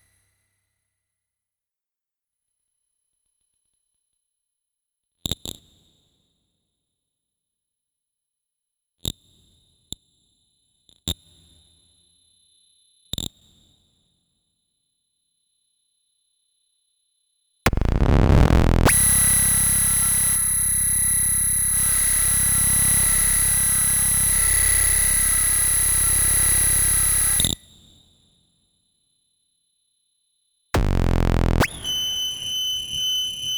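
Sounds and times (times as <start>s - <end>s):
tuning noise: 17.7s - 27.5s, 30.8s - 33.5s.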